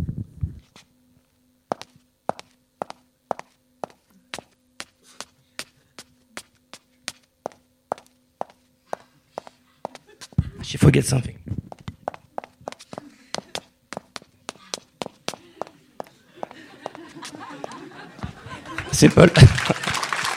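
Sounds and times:
foley footsteps of women's shoes walking on stairs: 0:01.7 - 0:10.6, 0:11.7 - 0:18.4
laughter: 0:09.0 - 0:10.8, 0:12.8 - 0:13.7, 0:14.6 - 0:20.3
speech: 0:10.7 - 0:11.6, 0:19.0 - 0:19.8.

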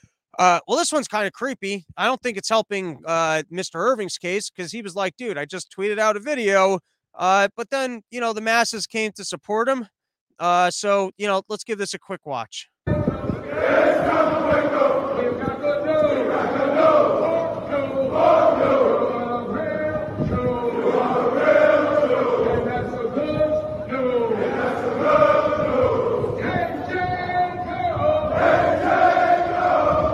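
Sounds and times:
speech: 0:00.4 - 0:12.8, 0:13.6 - 0:14.9
crowd of people dressed in purple yelling in unison: 0:13.4 - 0:19.8, 0:20.6 - 0:23.1, 0:23.9 - 0:30.1.

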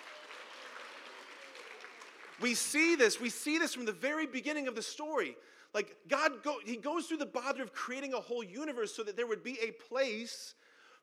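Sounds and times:
audience applause: 0:00.0 - 0:03.4
speech: 0:02.4 - 0:11.0.

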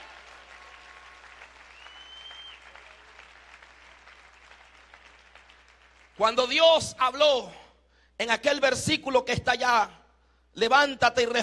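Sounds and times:
audience applause: 0:00.0 - 0:06.2
faint whistle-like tone: 0:01.7 - 0:02.6
speech: 0:06.2 - 0:07.6, 0:08.2 - 0:10.0, 0:10.6 - 0:11.4.

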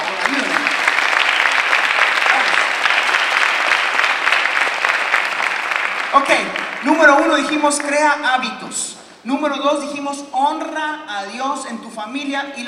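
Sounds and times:
audience applause: 0:00.0 - 0:08.2
speech: 0:06.1 - 0:12.6.

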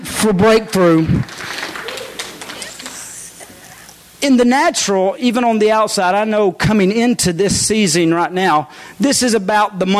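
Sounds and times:
speech: 0:00.2 - 0:01.4, 0:04.2 - 0:09.9
audience hand clapping: 0:01.2 - 0:03.3.

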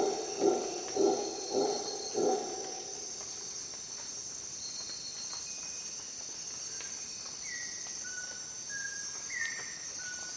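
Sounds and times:
howler monkey hoarse roar bursts: 0:00.0 - 0:02.8
steady insect buzzing: 0:00.0 - 0:04.7.

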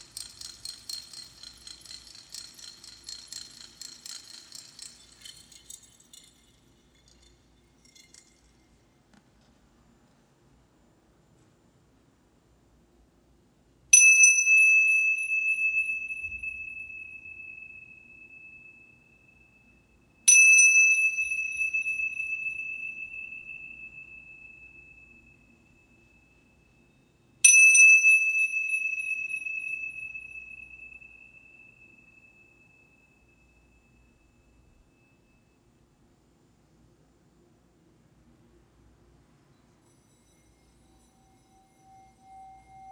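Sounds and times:
healing bowls struck and ringing: 0:00.0 - 0:09.0, 0:14.0 - 0:35.6, 0:39.6 - 0:42.9.

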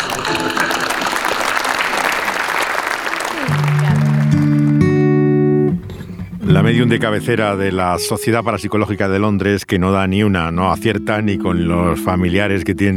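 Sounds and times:
audience applause: 0:00.0 - 0:05.4
speech: 0:06.6 - 0:12.9.

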